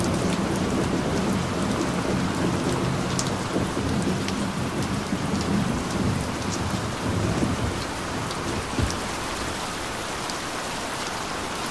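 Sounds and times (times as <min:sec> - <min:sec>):
gentle thunderstorm: 0:00.0 - 0:11.6.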